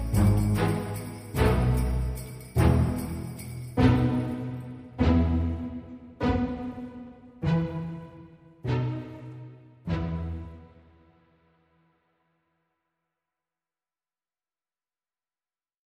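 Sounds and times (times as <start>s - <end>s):
waltz music: 0.0s - 11.1s.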